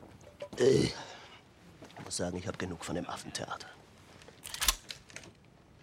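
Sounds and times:
speech: 0.6s - 1.1s, 2.2s - 3.8s
Walther pistol being cocked: 4.4s - 5.0s.

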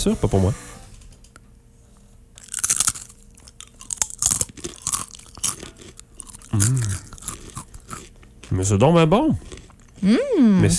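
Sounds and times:
speech: 0.0s - 0.7s, 8.6s - 10.7s
someone biting and chewing a crispy dried apple snack: 2.4s - 8.2s
person humming: 6.5s - 7.1s, 10.0s - 10.7s.

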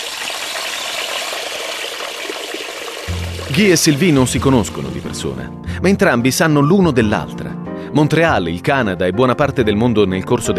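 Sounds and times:
water rushing and churning in a steady stream: 0.0s - 5.3s
speech: 3.6s - 10.5s.

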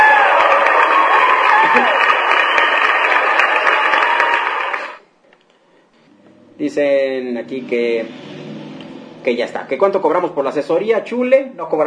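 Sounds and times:
applause: 0.0s - 5.0s
speech: 6.8s - 8.3s, 9.2s - 11.8s.

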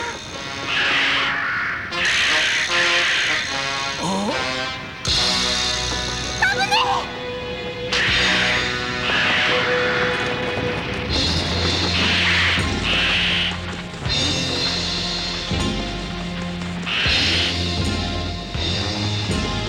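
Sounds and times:
large bird cawing: 0.0s - 3.7s, 7.8s - 15.1s, 16.9s - 17.8s
busy sound bed: 0.0s - 19.6s
other voices: 4.0s - 4.6s, 6.4s - 7.3s.

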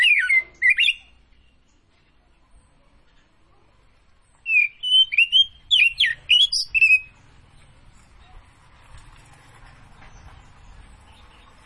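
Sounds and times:
Oriental magpie-robin singing whistled notes: 0.0s - 1.2s, 4.4s - 7.2s.

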